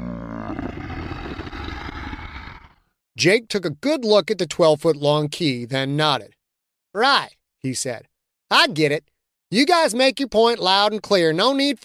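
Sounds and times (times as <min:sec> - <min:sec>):
deep throaty growl: 0:00.0 - 0:02.9
speech: 0:03.2 - 0:11.8.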